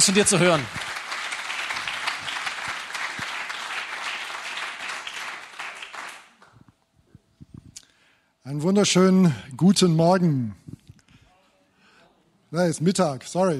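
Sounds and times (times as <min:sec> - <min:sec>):
speech: 0:00.0 - 0:01.0, 0:08.5 - 0:10.6, 0:12.5 - 0:13.5
audience applause: 0:00.0 - 0:06.6.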